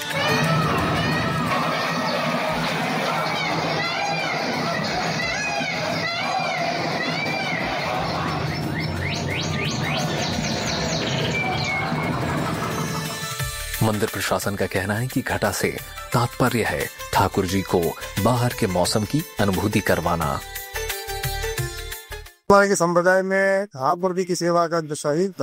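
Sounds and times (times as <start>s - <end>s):
indistinct crowd murmur: 0.1s - 13.0s
birds chirping: 1.3s - 13.4s
speech: 13.9s - 20.6s, 22.5s - 25.4s.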